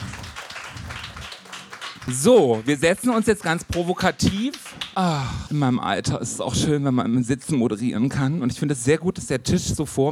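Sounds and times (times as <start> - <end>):
audience applause: 0.0 - 5.2
speech: 2.0 - 10.1.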